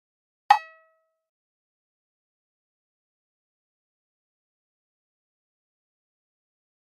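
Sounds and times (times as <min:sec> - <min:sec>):
high hollow pop-up tap: 0:00.5 - 0:01.0.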